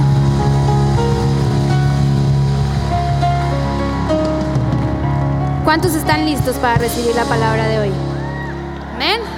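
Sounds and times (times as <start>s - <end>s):
audience applause: 0.2s - 6.3s, 8.0s - 9.3s
speech: 5.7s - 8.1s.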